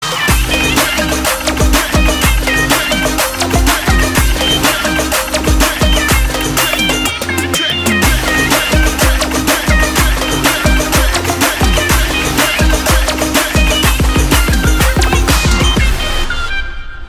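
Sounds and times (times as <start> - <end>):
background music ringtone: 0.0 - 17.0.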